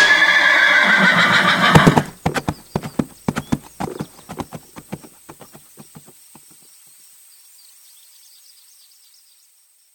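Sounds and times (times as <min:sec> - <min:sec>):
ridden horse whinnying loudly: 0:00.0 - 0:05.5
horse hooves clip-clopping: 0:01.6 - 0:06.7.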